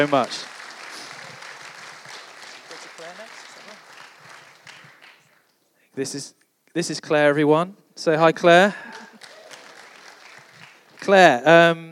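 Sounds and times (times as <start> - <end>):
speech: 0.0 - 0.5, 6.0 - 9.0, 11.1 - 11.9
round of applause: 0.0 - 5.4, 8.7 - 11.4.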